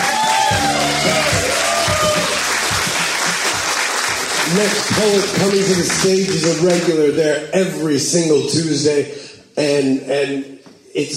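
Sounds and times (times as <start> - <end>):
audience clapping: 0.0 - 7.0
speech: 4.5 - 11.1.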